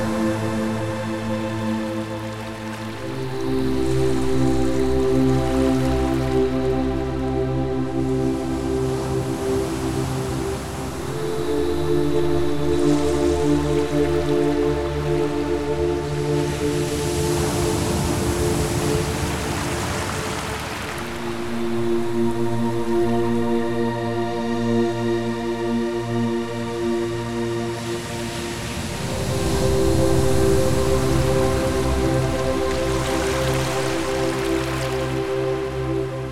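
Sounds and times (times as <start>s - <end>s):
ocean waves: 0.0s - 11.8s, 15.1s - 22.4s, 26.8s - 36.3s
30 BPM music for a ketamine session: 0.0s - 36.3s.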